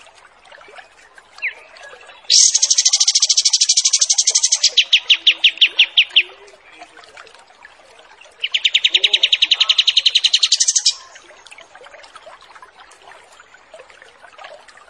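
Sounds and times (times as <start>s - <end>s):
wild pied triller song with buzzy trills, sharp note and short whistle: 2.3s - 6.2s, 8.4s - 11.2s.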